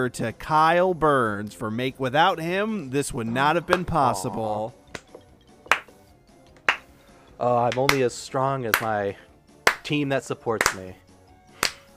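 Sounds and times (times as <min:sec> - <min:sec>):
speech: 0:00.0 - 0:04.8, 0:07.4 - 0:09.3, 0:09.9 - 0:11.0
slow clapping: 0:03.7 - 0:06.0, 0:06.6 - 0:07.0, 0:07.7 - 0:08.1, 0:08.7 - 0:09.0, 0:09.7 - 0:09.9, 0:10.6 - 0:10.9, 0:11.6 - 0:11.9.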